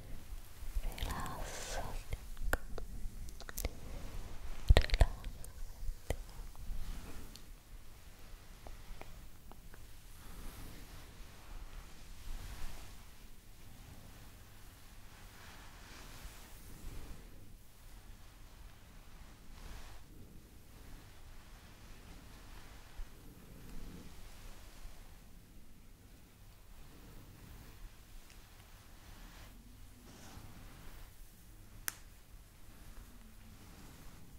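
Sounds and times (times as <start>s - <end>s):
soft rustling and brushing against skin or fabric during massage: 0.0s - 34.3s
sharp taps and snaps: 31.8s - 32.1s.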